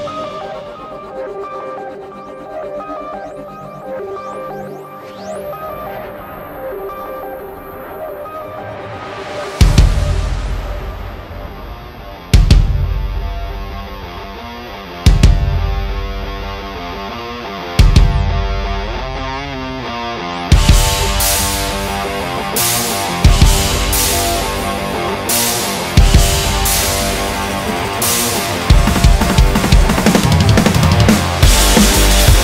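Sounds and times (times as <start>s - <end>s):
drums playing: 9.6s - 14.2s, 15.0s - 16.6s, 17.8s - 18.7s, 20.5s - 32.4s.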